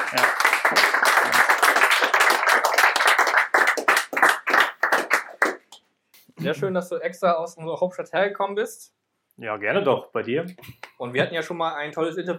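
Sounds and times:
audience applause: 0:00.0 - 0:05.7
speech: 0:06.4 - 0:12.3.

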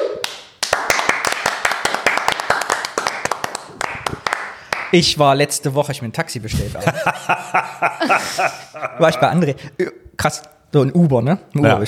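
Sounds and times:
applause, hands clapping: 0:00.0 - 0:05.0
speech: 0:04.9 - 0:11.8
laughter: 0:06.5 - 0:09.6.

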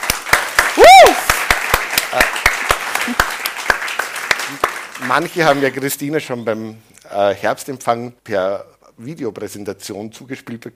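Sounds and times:
audience applause: 0:00.0 - 0:05.8
speech: 0:05.1 - 0:10.7.

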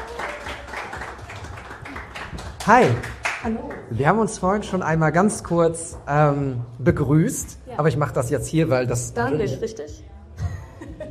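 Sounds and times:
audience applause: 0:00.0 - 0:03.9
speech: 0:02.6 - 0:10.1
laughter: 0:10.4 - 0:11.1.

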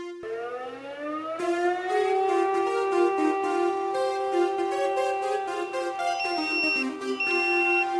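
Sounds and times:
fire brigade alarm siren wailing: 0:00.2 - 0:07.9
pulsing fire brigade alert tones: 0:02.8 - 0:07.9.

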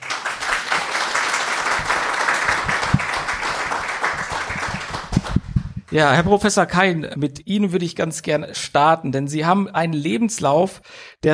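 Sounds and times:
audience applause for four panel guests: 0:00.0 - 0:05.7
speech: 0:05.9 - 0:11.3.

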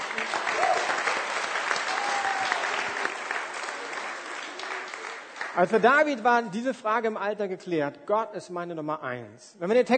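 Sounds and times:
audience clapping: 0:00.0 - 0:06.2
speech: 0:05.6 - 0:09.9.

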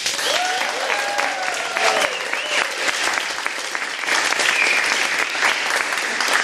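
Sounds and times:
live audience applause: 0:00.0 - 0:06.4
whoops and whistles: 0:00.2 - 0:02.8.

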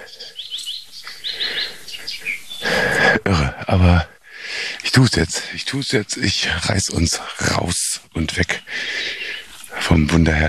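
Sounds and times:
birdsong including tits: 0:00.0 - 0:10.4
speech: 0:03.2 - 0:04.1, 0:05.0 - 0:09.2, 0:09.9 - 0:10.4.

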